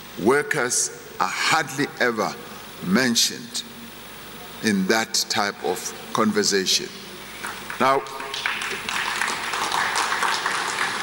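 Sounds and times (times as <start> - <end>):
speech: 0.2 - 3.8, 4.6 - 7.0, 7.8 - 9.0
weak audience applause: 7.4 - 11.0.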